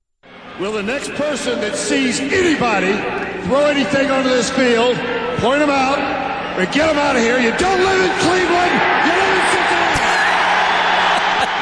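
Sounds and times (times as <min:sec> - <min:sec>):
speech: 0:00.6 - 0:09.2
stadium crowd cheering: 0:05.8 - 0:11.5.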